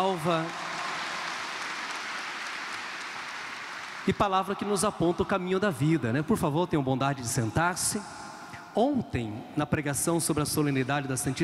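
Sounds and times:
speech: 0:00.0 - 0:00.7, 0:04.0 - 0:08.2, 0:08.8 - 0:11.4
audience applauding: 0:00.0 - 0:05.0.

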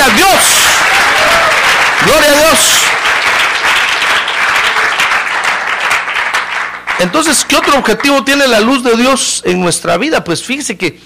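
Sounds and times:
audience applause: 0:00.0 - 0:08.3
speech: 0:07.0 - 0:11.0.

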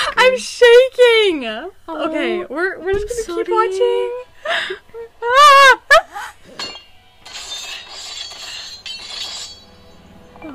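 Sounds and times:
speech: 0:00.3 - 0:06.7
metal scraping like knives being sharpened: 0:06.5 - 0:10.2.

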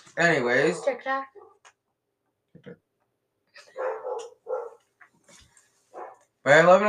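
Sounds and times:
speech: 0:00.2 - 0:01.5, 0:02.6 - 0:02.9, 0:06.5 - 0:06.8
dog barking: 0:01.3 - 0:01.6, 0:03.7 - 0:04.9, 0:05.9 - 0:06.3.

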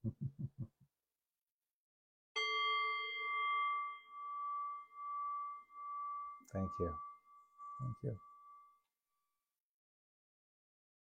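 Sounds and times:
bell rung to close meditation: 0:02.4 - 0:08.8
speech: 0:06.5 - 0:07.1, 0:07.8 - 0:08.3.

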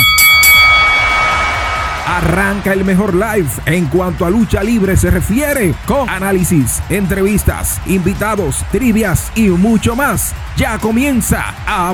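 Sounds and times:
bell ringing: 0:00.0 - 0:04.0
speech: 0:02.6 - 0:11.9.

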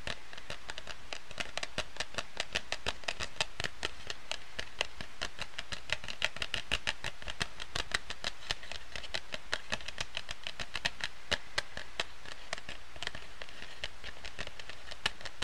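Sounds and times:
scratching: 0:00.0 - 0:15.4
tapping: 0:00.0 - 0:15.4.

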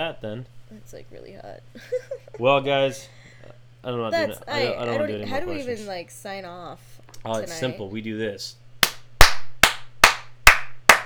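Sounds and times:
speech: 0:00.0 - 0:03.2, 0:03.8 - 0:08.6
one person clapping hands: 0:08.8 - 0:11.0.

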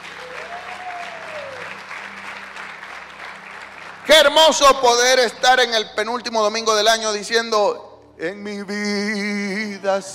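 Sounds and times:
audience applause: 0:00.0 - 0:05.1
speech: 0:04.1 - 0:10.1.

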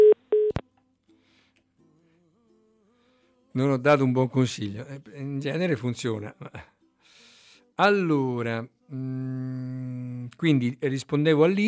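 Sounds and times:
telephone busy tone after dropped call: 0:00.0 - 0:00.6
speech: 0:03.6 - 0:06.8, 0:07.8 - 0:11.6.

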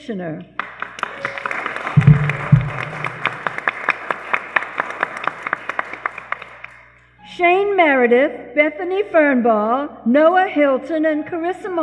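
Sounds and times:
speech: 0:00.0 - 0:00.6, 0:07.4 - 0:11.8
audience applause: 0:00.6 - 0:06.9.

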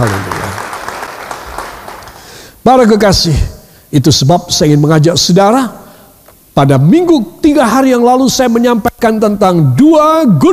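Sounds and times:
audience applause: 0:00.0 - 0:02.4
speech: 0:02.6 - 0:05.8, 0:06.6 - 0:10.5.

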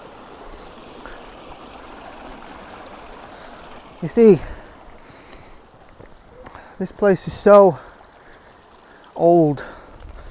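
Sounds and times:
waterfall rushing water: 0:00.0 - 0:09.6
speech: 0:04.0 - 0:04.6, 0:06.8 - 0:07.9, 0:09.2 - 0:09.8.

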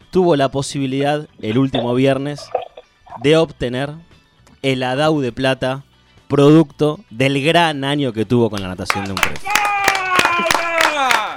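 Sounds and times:
speech: 0:00.1 - 0:02.6, 0:03.2 - 0:09.7
hand claps: 0:08.6 - 0:11.3.

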